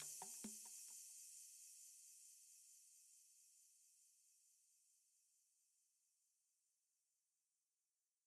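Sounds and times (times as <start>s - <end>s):
percussion: 0.0s - 5.3s.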